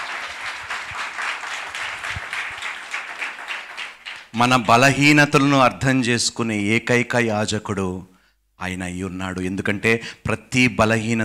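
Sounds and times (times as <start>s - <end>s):
church congregation clapping for God: 0.0s - 5.3s
speech: 4.4s - 11.2s.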